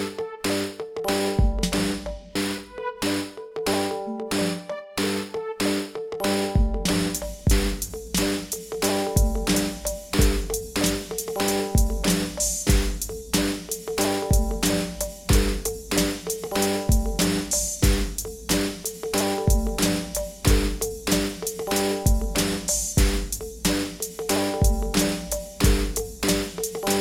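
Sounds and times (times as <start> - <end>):
gamelan: 0.0 - 26.9.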